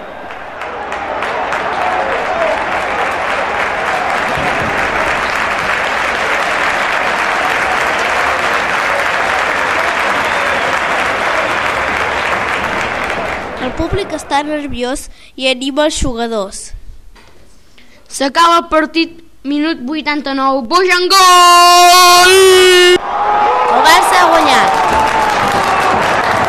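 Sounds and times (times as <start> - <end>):
large stadium crowd applauding loudly: 0.0 - 14.4, 22.9 - 26.4
speech: 13.9 - 16.8, 18.1 - 23.1, 23.7 - 25.3.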